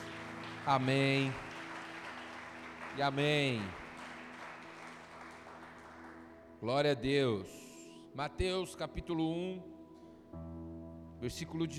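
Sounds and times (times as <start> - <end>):
audience applause: 0.0 - 6.3
speech: 0.7 - 1.4, 3.0 - 3.8, 6.6 - 7.6, 8.2 - 10.5, 11.2 - 11.7.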